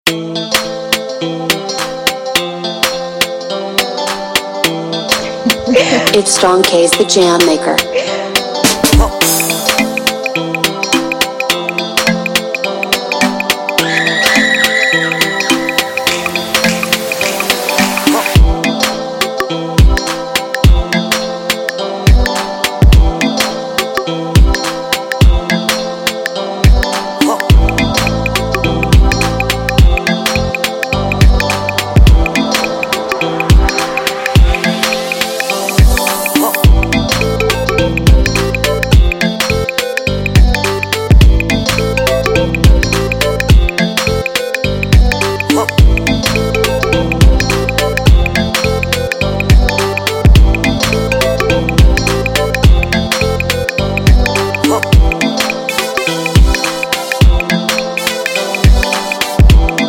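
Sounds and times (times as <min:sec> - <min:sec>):
juju highlife instrumental beat: 0:00.0 - 0:59.8.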